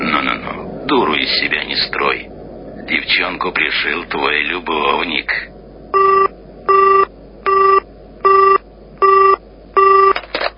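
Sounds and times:
speech: 0.9s - 2.3s, 2.9s - 5.6s
telephone line tones beeping: 6.0s - 10.4s.

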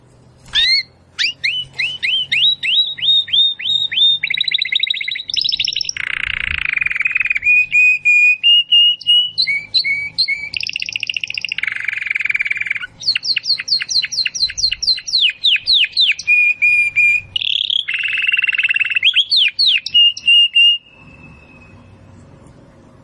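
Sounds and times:
domestic canary singing: 0.3s - 22.2s.

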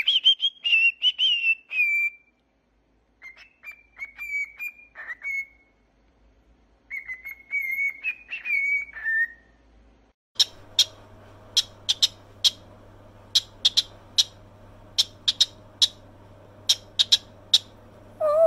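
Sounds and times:
cockatiel whistling and chirping: 0.0s - 2.3s, 3.2s - 5.8s, 6.9s - 9.6s, 10.4s - 12.6s, 13.3s - 14.4s, 15.0s - 16.0s, 16.6s - 18.4s
low hum: 10.4s - 18.4s.

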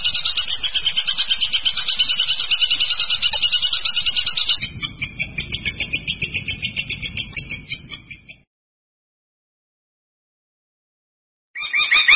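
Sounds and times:
long-tailed shrike singing, champion contest bird: 0.0s - 8.4s.

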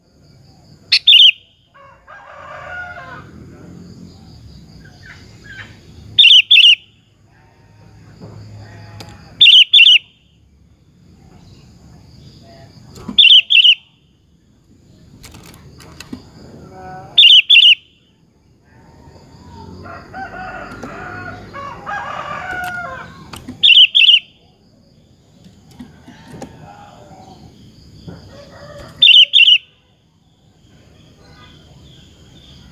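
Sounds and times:
sooty-headed bulbul singing whistled phrases: 0.9s - 1.5s, 6.1s - 6.9s, 9.4s - 10.2s, 13.2s - 13.9s, 17.2s - 17.9s, 23.6s - 24.4s, 29.0s - 29.8s.

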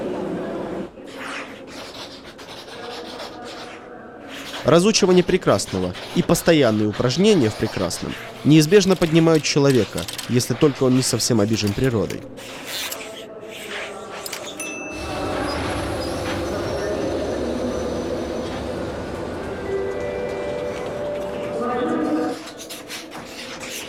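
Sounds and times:
crowd in a railway station hall: 0.0s - 4.6s, 13.0s - 23.8s
speech: 4.6s - 13.0s
trains at a railway station: 14.6s - 22.6s.

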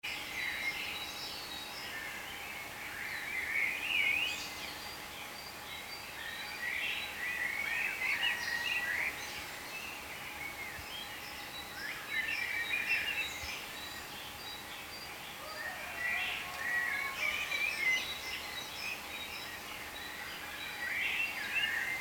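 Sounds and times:
birds chirping in overlapping chorus: 0.1s - 22.0s.

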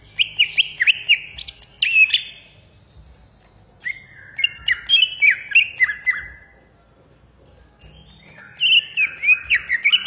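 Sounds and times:
greater green leafbird of the Banyuwangi type singing agitated rapid whistles and chirps: 0.0s - 6.6s, 7.4s - 10.0s.

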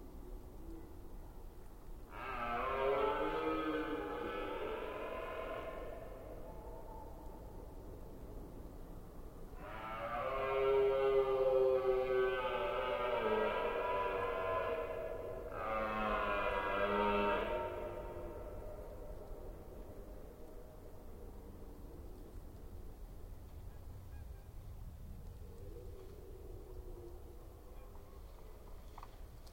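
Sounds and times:
red deer stag roaring during the rut in Forêt d'Orleans, France: 2.1s - 6.2s, 9.6s - 19.3s.

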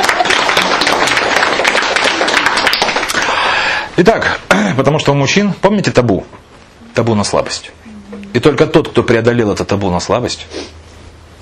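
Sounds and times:
audience applause at a personal growth seminar: 0.0s - 3.8s
speech: 4.0s - 6.4s, 7.0s - 10.8s.

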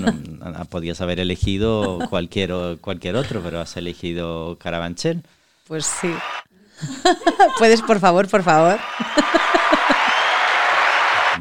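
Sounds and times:
speech: 0.0s - 9.7s
laughter: 1.8s - 2.2s, 6.8s - 10.9s
neighbourhood audience applause in Carabanchel: 5.9s - 6.4s, 7.6s - 11.3s.

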